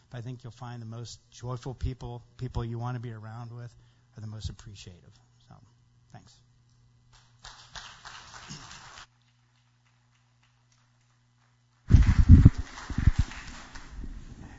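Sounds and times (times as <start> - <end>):
speech: 0.1 - 6.5
audience applause: 7.4 - 9.1, 11.9 - 14.5.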